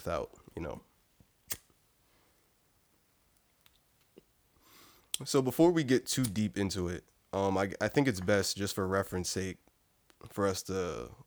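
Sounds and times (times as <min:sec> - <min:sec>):
speech: 0:00.0 - 0:00.9, 0:05.2 - 0:11.2
lighter being flicked to light up: 0:01.5 - 0:01.7.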